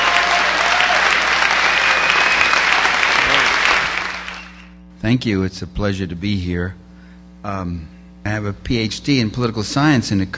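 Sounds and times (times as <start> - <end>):
audience applause welcoming Michael Parenti: 0.0 - 4.6
speech: 5.1 - 6.8, 7.4 - 10.3.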